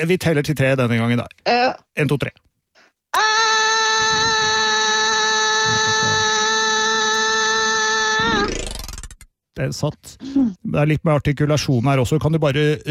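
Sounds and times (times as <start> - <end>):
speech: 0.0 - 2.4, 3.1 - 4.3, 9.6 - 12.8
person screaming in a stairwell: 3.2 - 8.5.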